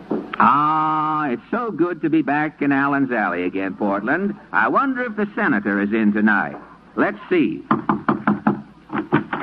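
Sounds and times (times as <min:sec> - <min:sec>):
speech: 0:00.4 - 0:08.3
knocking on a door: 0:07.7 - 0:09.4.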